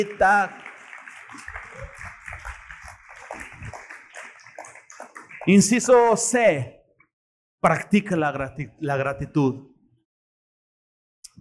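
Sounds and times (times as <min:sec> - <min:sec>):
speech: 0:00.0 - 0:00.6, 0:05.5 - 0:06.8, 0:07.6 - 0:09.7
audience applause: 0:00.0 - 0:06.3.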